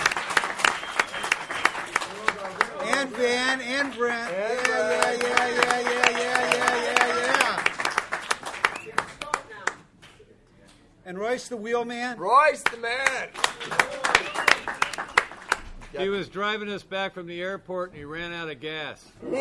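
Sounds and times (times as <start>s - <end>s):
audience applause and clapping: 0.0s - 9.8s, 13.0s - 16.0s
speech: 3.2s - 6.2s, 11.1s - 13.8s, 15.9s - 19.4s.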